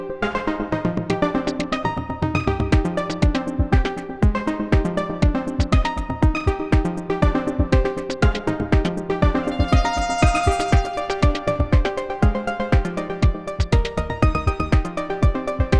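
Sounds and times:
electronica music made on a Polyend Play: 0.4 - 15.7.

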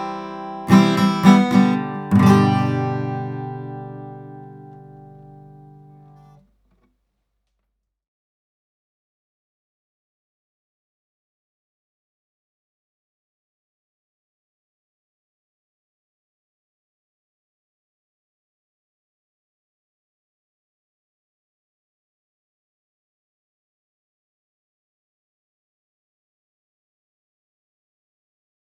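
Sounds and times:
guitar recorded with AEA R44C ribbon microphone: 0.0 - 6.4.

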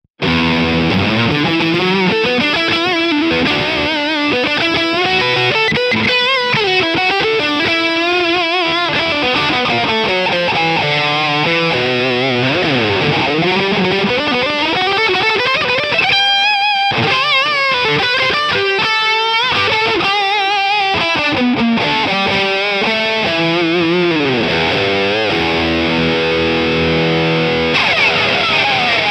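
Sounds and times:
high gain lead guitar: 0.2 - 29.0.

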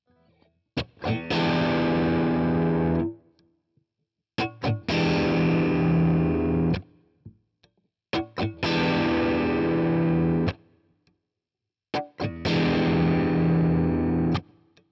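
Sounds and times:
Nashville Tele push-pull overdrive electric guitar: 0.8 - 3.2, 4.4 - 6.8, 8.2 - 10.6, 12.0 - 14.5.

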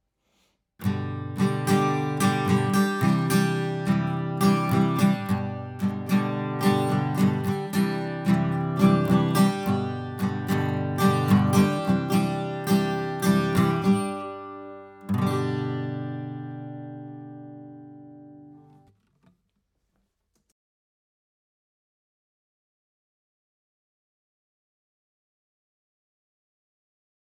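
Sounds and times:
guitar recorded with Lewitt RAY LCT640: 0.8 - 19.3.

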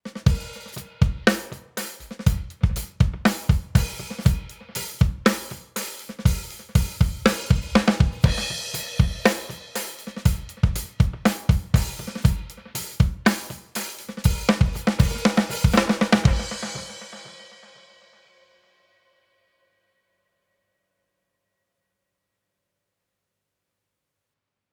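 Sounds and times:
drum groove through Binson Echorec delay: 0.0 - 18.0.

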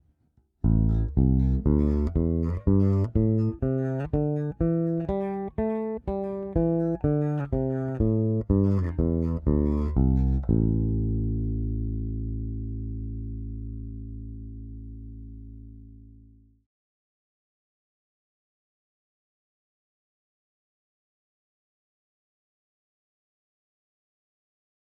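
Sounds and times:
bass guitar with Aguilar Super Double Bridge active pickup: 0.6 - 16.6.

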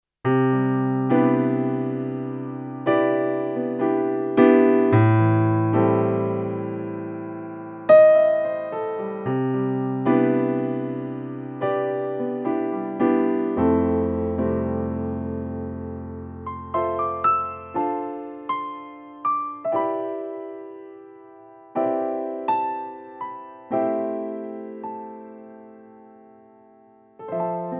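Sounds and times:
Yamaha CK88 S700 piano: 0.2 - 27.7.

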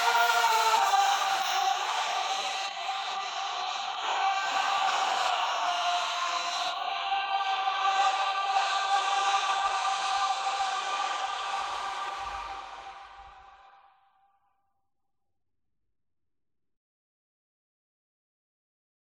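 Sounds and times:
vocal harmony: 0.0 - 14.0.

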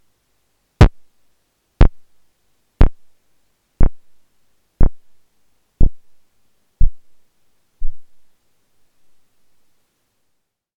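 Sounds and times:
simple drum beat: 0.8 - 1.0, 1.8 - 2.0, 2.8 - 3.1, 3.8 - 4.0, 4.8 - 5.1, 5.8 - 6.1, 6.8 - 7.0.

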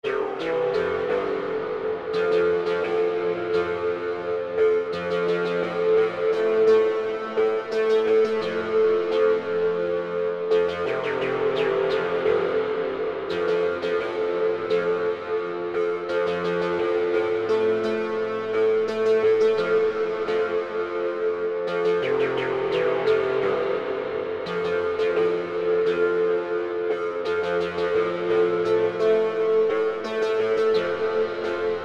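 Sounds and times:
MS-20 synthesizer with fully wet hall reverb: 0.0 - 31.8.

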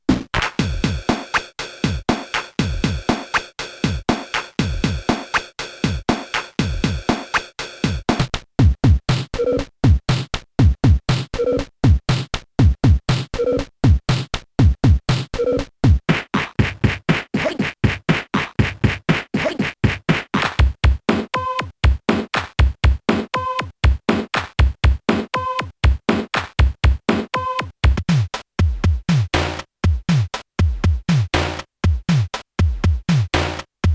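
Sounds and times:
drum sounds: 0.1 - 33.9.

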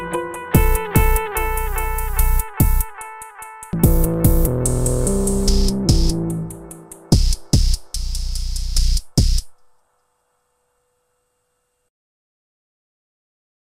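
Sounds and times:
guitar with band-pass filter and delay: 0.0 - 3.1, 3.8 - 8.0
SOMA Pulsar-23 synthesizer: 0.0 - 9.2.

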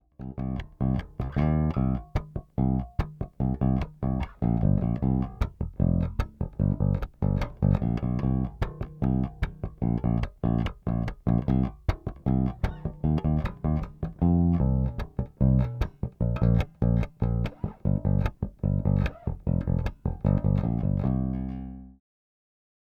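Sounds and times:
bass guitar on both pickups: 0.0 - 22.0.

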